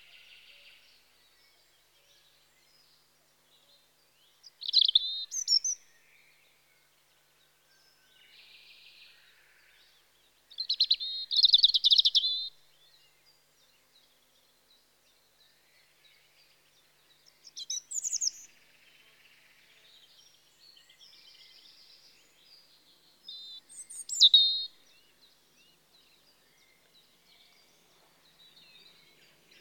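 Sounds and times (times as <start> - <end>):
European robin Erithacus rubecula singing in spring: 4.4 - 6.1, 10.5 - 13.7, 15.2 - 29.6.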